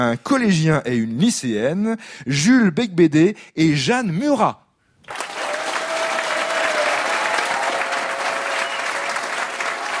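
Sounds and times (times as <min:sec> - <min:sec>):
speech: 0:00.0 - 0:05.2
audience applause welcoming two young guests on a special youth day in Navailles: 0:05.0 - 0:09.9.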